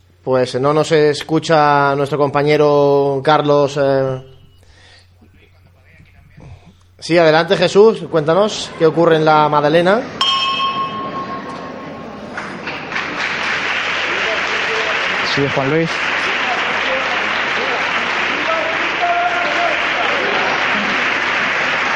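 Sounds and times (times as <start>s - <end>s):
speech: 0.2s - 4.3s, 7.0s - 10.4s, 15.4s - 16.2s
church bell ringing: 10.2s - 12.8s
sustained applause from a large crowd: 10.2s - 21.9s.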